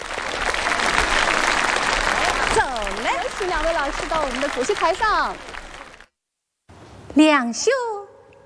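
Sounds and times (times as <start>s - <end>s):
children clapping in applause: 0.0s - 6.1s
speech: 3.4s - 5.5s, 7.2s - 7.9s.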